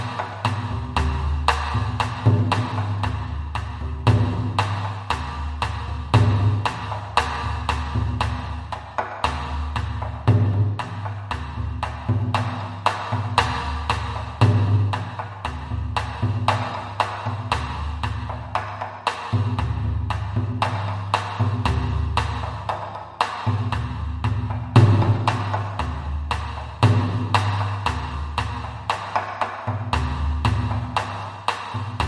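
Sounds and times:
drums: 0.0 - 32.0.

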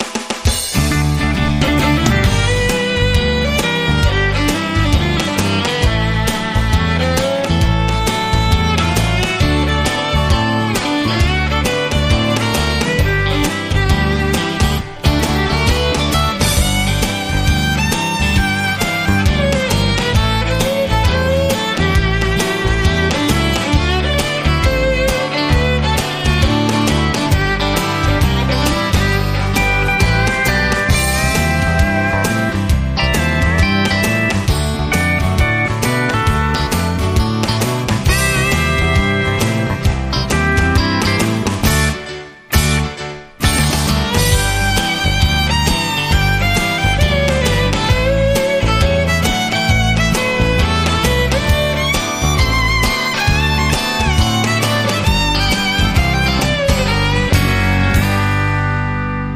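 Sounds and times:
country boogie music: 0.0 - 59.3.

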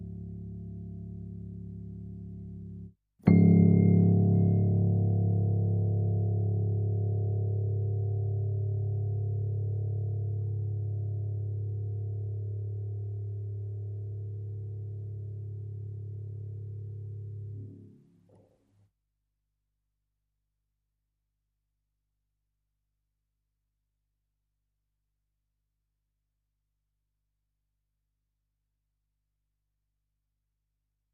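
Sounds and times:
piano: 0.0 - 18.4.

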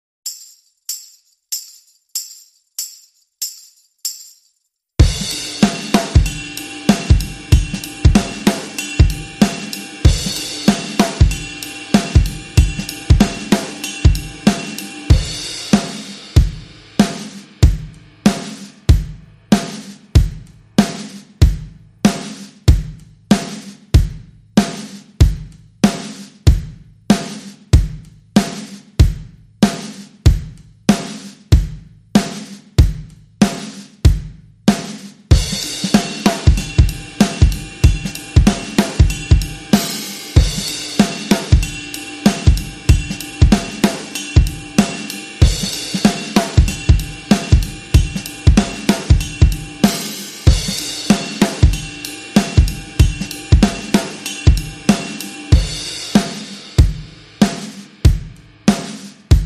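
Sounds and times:
drums: 5.0 - 59.4.

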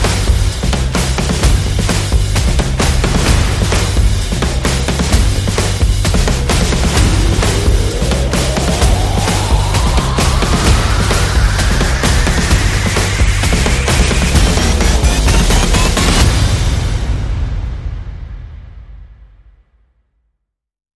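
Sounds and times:
funky percussion: 0.0 - 17.0
bass: 0.0 - 18.1
sound effects: 3.0 - 18.0.

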